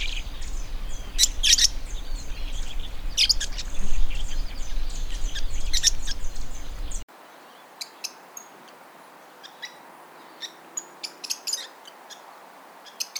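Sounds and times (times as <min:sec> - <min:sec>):
lovebird calling: 0:00.0 - 0:07.1.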